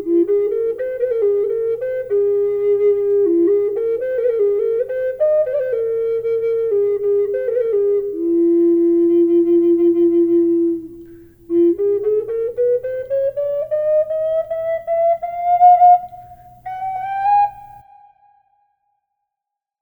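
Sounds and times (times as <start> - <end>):
flute with reverb: 0.0 - 19.0.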